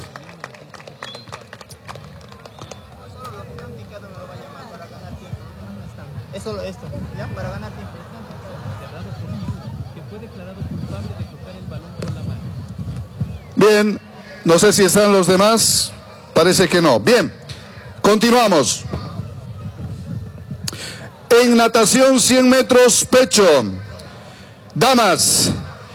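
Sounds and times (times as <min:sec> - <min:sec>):
audience applause: 0:00.0 - 0:03.7
murmur of crowd voices: 0:00.0 - 0:25.9
speech: 0:06.3 - 0:08.0, 0:10.2 - 0:12.1, 0:13.6 - 0:17.4, 0:18.1 - 0:18.9, 0:21.4 - 0:23.9, 0:24.8 - 0:25.7.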